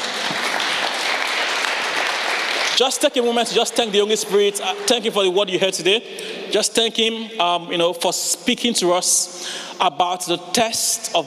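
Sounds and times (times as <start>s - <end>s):
audience clapping: 0.0s - 5.2s
speech: 2.8s - 11.2s.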